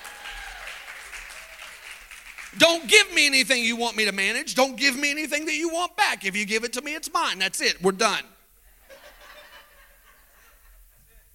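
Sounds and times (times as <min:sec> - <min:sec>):
crowd clapping: 0:00.0 - 0:03.2
speech: 0:02.5 - 0:08.3
laughter: 0:08.7 - 0:11.3.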